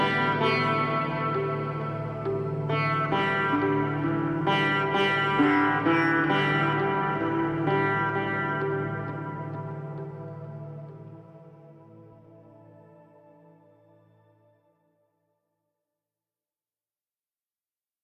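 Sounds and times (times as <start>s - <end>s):
sitar melodies for massage: 0.0s - 14.3s.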